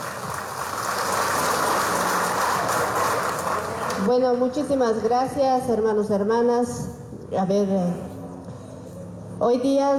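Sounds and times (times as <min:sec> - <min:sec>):
audience applause: 0:00.0 - 0:04.1
speech: 0:04.0 - 0:08.1, 0:09.4 - 0:09.9.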